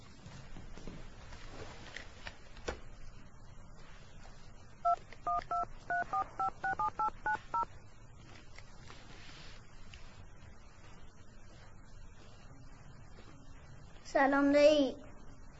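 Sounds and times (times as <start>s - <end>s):
soft rustling and shuffling: 0.0s - 4.8s, 7.8s - 14.0s
telephone number dialed in touch-tone beeps: 5.3s - 7.7s
speech: 14.2s - 15.0s.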